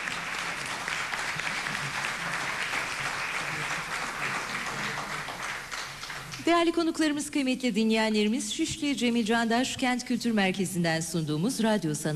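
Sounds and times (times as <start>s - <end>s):
audience applause in a concert hall for a composer and conductor: 0.0s - 6.5s
speech: 6.5s - 12.1s.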